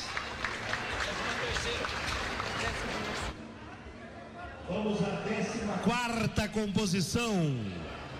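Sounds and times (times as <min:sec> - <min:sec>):
group applauding: 0:00.0 - 0:03.4
speech: 0:04.7 - 0:07.9.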